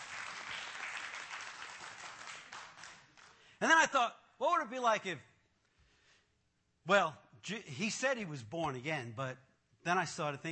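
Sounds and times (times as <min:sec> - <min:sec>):
audience applause: 0:00.0 - 0:03.5
speech: 0:03.6 - 0:05.3, 0:06.9 - 0:10.5.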